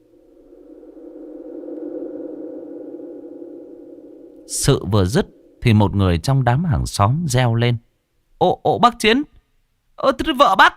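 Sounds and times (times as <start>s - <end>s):
strong howling wind: 0.0s - 6.2s
speech: 4.5s - 9.3s, 10.0s - 10.7s.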